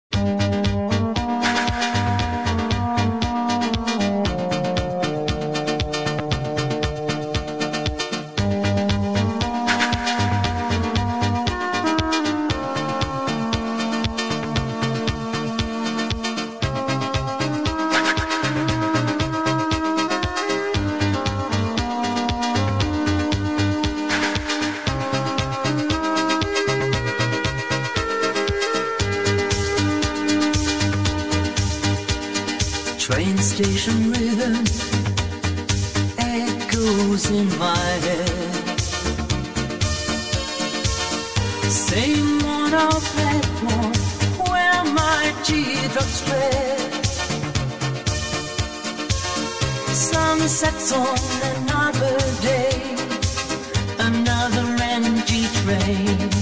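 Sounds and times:
AI-generated 1980s disco music: 0.1s - 56.3s.

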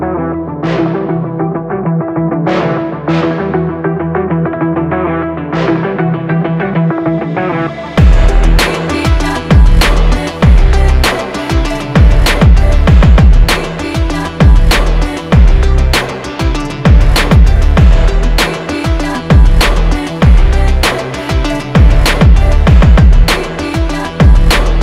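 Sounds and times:
hard motivational rap beat with rock guitar: 0.0s - 24.8s.

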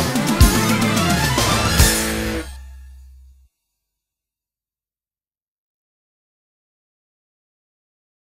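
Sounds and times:
karaoke backing track: 0.0s - 2.6s.

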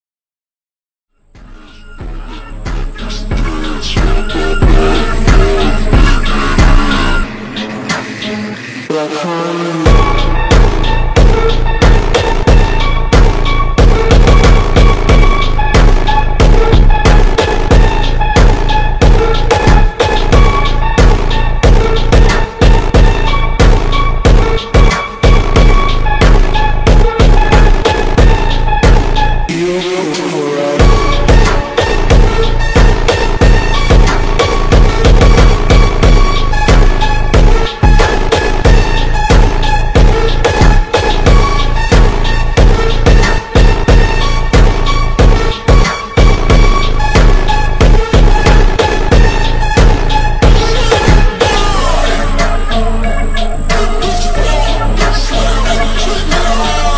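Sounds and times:
slowed reverb music: 1.4s - 56.9s.

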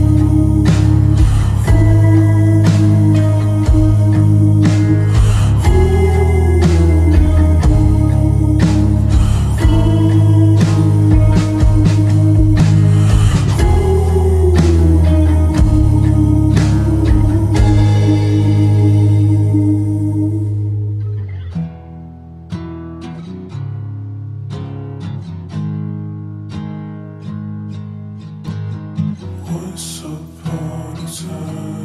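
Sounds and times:
extended slowed reverb music: 0.0s - 21.5s.

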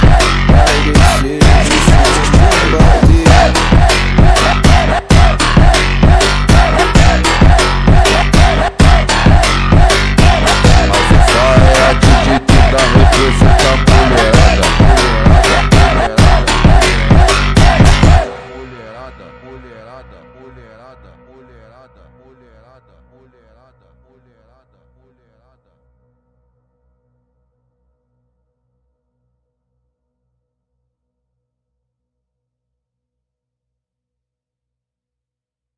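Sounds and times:
rhythmic automotivo beat: 0.0s - 19.6s.

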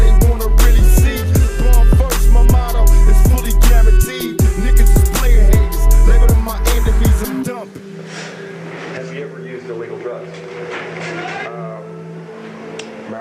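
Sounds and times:
extreme bass boosted remix: 0.0s - 7.8s.

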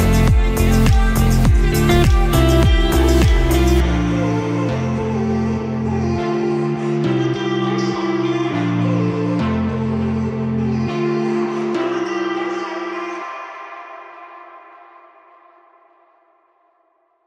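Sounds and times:
instrumental music: 0.0s - 13.3s.

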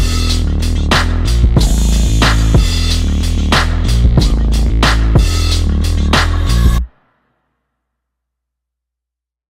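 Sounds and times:
instrumental music: 0.0s - 7.0s.

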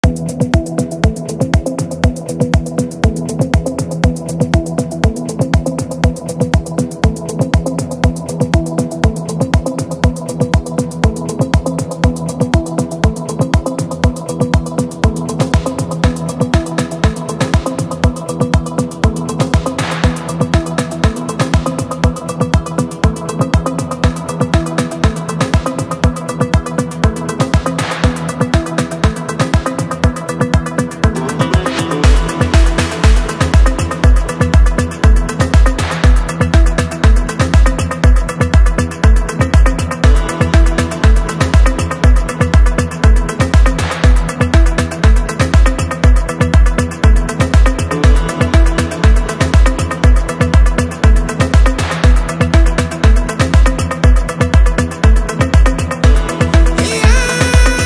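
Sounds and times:
afro house music: 0.0s - 57.8s.

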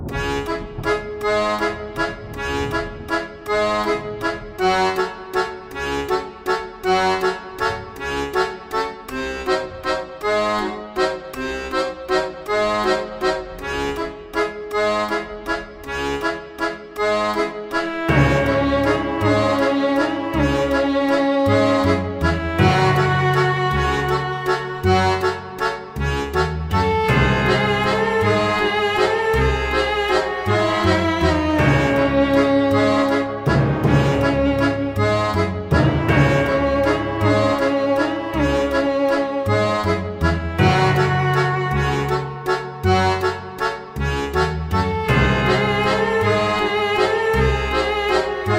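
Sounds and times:
dark vampire waltz music: 0.1s - 48.5s.

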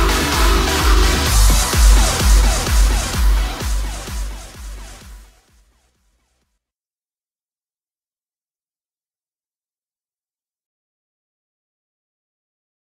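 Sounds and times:
boosted bass: 0.0s - 5.5s.

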